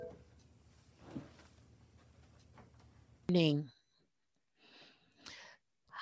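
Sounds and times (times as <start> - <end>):
speech: 3.3 - 3.7
deep breath drawn audibly: 4.6 - 6.0.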